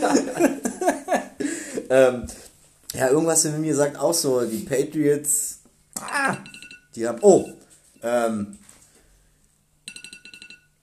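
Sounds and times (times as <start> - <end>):
laughter: 0.0 - 1.9
speech: 1.9 - 8.6
watch alarm ringing with high-pitched electronic beeps: 6.3 - 8.1, 9.9 - 10.8.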